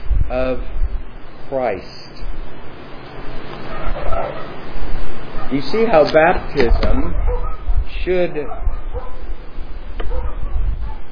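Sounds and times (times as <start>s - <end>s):
low rumbling noise: 0.0s - 11.1s
speech: 0.3s - 0.8s, 1.5s - 2.3s, 5.5s - 7.3s, 8.0s - 8.7s
dogs barking in the background: 3.2s - 11.1s.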